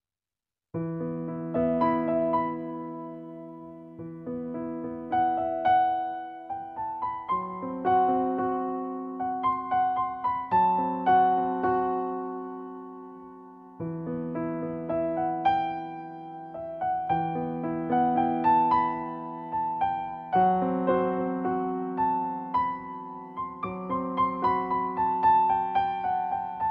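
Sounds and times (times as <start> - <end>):
piano: 0.8 - 26.6.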